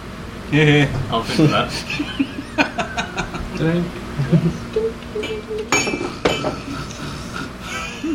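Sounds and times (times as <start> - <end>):
speech: 0.5 - 3.0, 3.6 - 5.7
laughter: 1.2 - 8.1
glasses clinking in a toast: 5.2 - 6.7.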